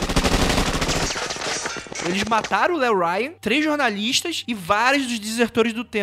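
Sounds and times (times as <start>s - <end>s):
gunfire: 0.0s - 2.5s
speech: 2.0s - 6.0s.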